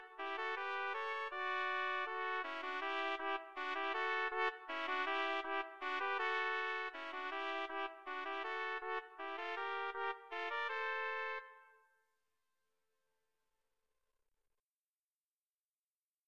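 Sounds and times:
trumpet trio playing slavonic music: 0:00.0 - 0:11.4.

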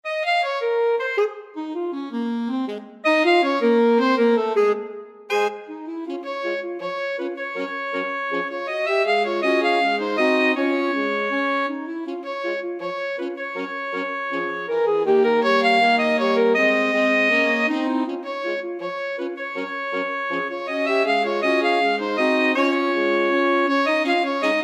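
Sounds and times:
alto saxophone quartet: 0:00.1 - 0:24.6.

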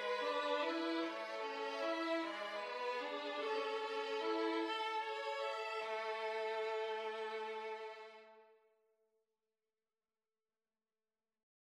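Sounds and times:
violin duet: 0:00.0 - 0:08.4.

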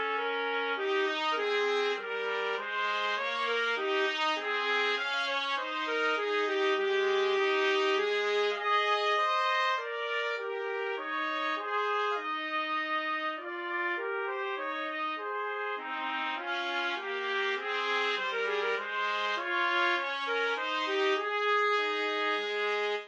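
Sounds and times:
trumpet duet of a minuet in C: 0:00.0 - 0:23.0.

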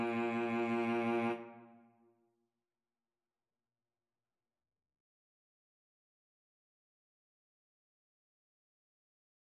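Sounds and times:
cello: 0:00.0 - 0:02.0.

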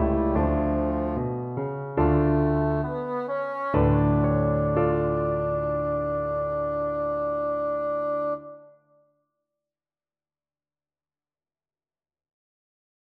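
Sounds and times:
bassoon playing: 0:00.0 - 0:08.8.

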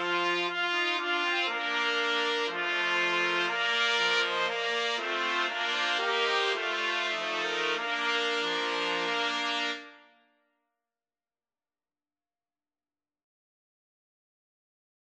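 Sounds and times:
four trumpets playing a trumpet voluntary: 0:00.0 - 0:10.1.

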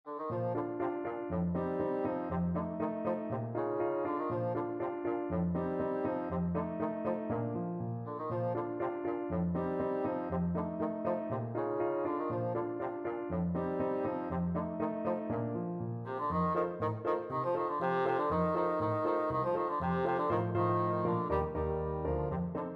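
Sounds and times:
bassoon playing an ecossaise: 0:00.1 - 0:22.7.

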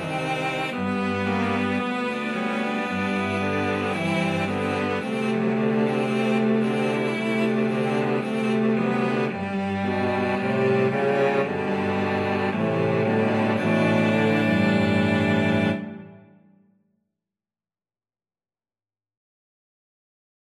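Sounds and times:
cello quartet: 0:00.0 - 0:16.4.

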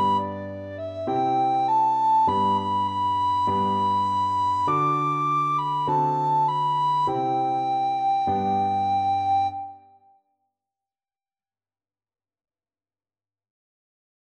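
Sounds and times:
recorder: 0:00.0 - 0:09.6.

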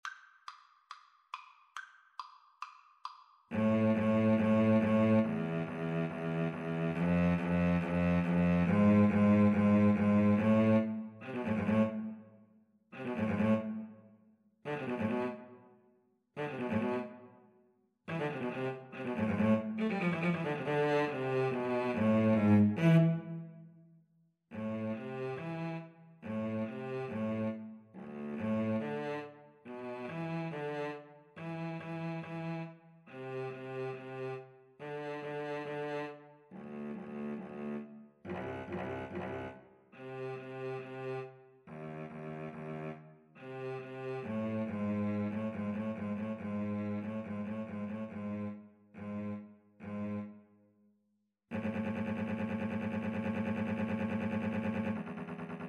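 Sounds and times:
cello duet: 0:03.5 - 0:12.3, 0:13.0 - 0:14.0, 0:14.7 - 0:15.7, 0:16.4 - 0:17.4, 0:18.1 - 0:23.7, 0:24.5 - 0:50.5, 0:51.5 - 0:55.6.

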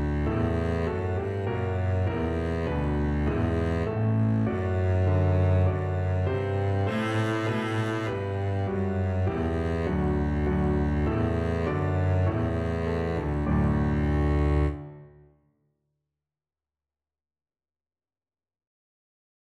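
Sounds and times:
double bass melody: 0:00.0 - 0:15.0.

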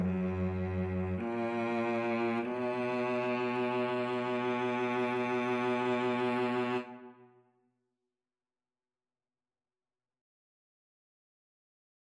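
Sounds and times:
viola and cello duet: 0:00.0 - 0:07.2.

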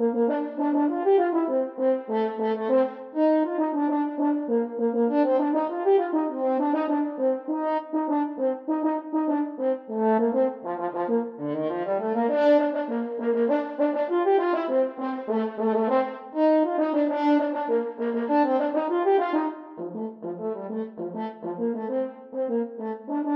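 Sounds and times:
French horn duet: 0:00.0 - 0:23.3.

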